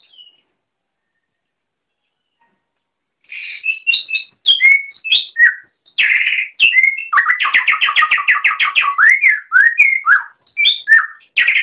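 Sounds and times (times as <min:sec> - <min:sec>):
Oriental magpie-robin long varied whistled song: 0:00.0 - 0:00.5, 0:03.2 - 0:11.6.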